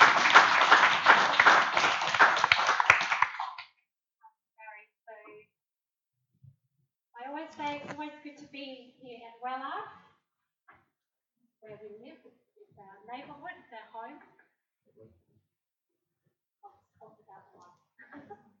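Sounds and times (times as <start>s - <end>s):
audience applause welcoming a pastor at a church service: 0.0s - 3.6s.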